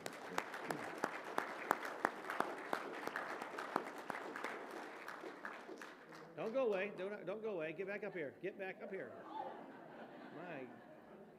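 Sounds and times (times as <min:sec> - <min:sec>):
church congregation clapping to welcome new members during a service: 0:00.0 - 0:07.2
speech: 0:06.5 - 0:09.3
laughter: 0:08.8 - 0:11.3.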